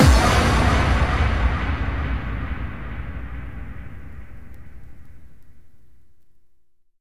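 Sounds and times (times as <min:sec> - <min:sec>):
bass drum kick with reverb: 0:00.0 - 0:04.8.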